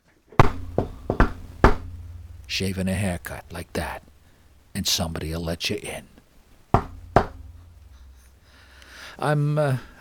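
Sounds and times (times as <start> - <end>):
secret knock on a door: 0.4 - 2.2, 6.8 - 7.6
speech: 2.5 - 4.1, 4.8 - 6.1, 9.2 - 9.9.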